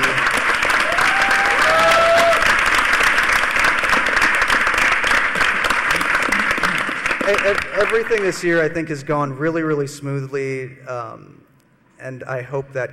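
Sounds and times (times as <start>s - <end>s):
crowd applauding: 0.0s - 8.7s
speech: 7.3s - 11.4s, 12.0s - 12.9s.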